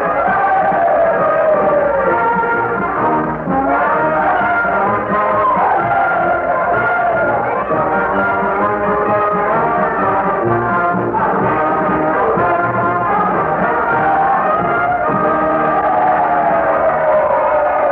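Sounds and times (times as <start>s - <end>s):
dense noisy crowd cheering and shouting: 0.0s - 10.5s, 11.1s - 17.8s
brass band playing a lively march tune: 0.0s - 17.8s.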